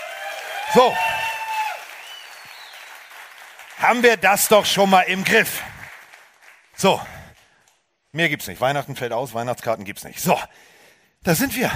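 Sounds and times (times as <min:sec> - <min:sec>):
audience applause: 0:00.0 - 0:07.4
speech: 0:00.7 - 0:01.1, 0:03.8 - 0:05.7, 0:06.8 - 0:07.2, 0:08.1 - 0:11.7.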